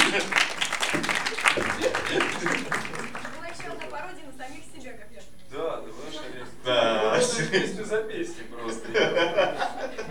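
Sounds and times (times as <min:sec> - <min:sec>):
laughter: 0:00.0 - 0:03.8, 0:07.2 - 0:10.0
audience applause: 0:00.0 - 0:04.2.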